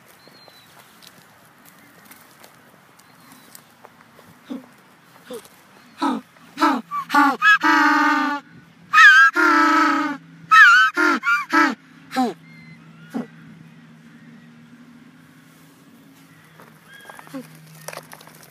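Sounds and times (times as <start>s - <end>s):
speech: 5.3s - 5.6s
African penguin giving a donkey-like bray: 6.0s - 8.4s, 9.0s - 13.4s.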